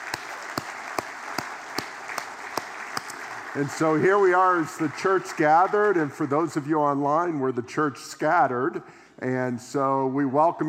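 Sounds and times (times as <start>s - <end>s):
audience clapping: 0.0s - 6.7s
speech: 3.6s - 10.6s.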